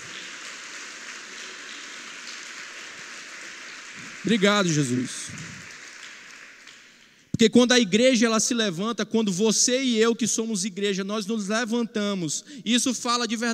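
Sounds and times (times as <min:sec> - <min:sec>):
audience applause: 0:00.0 - 0:07.2
speech: 0:04.0 - 0:05.5, 0:07.4 - 0:13.5.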